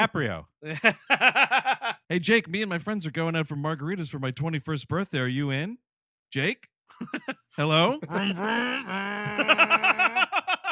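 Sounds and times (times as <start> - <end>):
speech: 0.0 - 9.9
laughter: 0.7 - 2.1, 6.9 - 10.6
voice imitating a motorcycle engine: 8.0 - 10.1.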